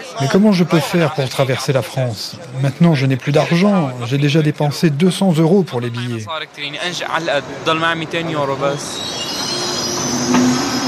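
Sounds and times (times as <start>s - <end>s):
speech: 0.2s - 9.4s
night train pulling into station: 7.6s - 10.8s
high metallic squeal of wheels braking: 8.0s - 10.8s.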